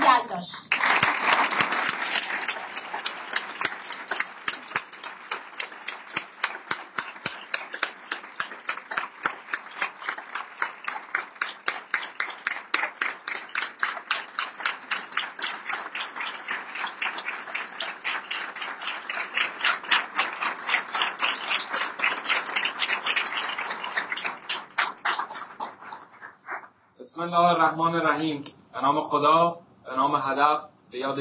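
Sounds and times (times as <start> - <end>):
crowd applause settling into rhythmic clapping in unison: 0.0 - 28.4
speech: 0.4 - 1.1, 27.2 - 31.1.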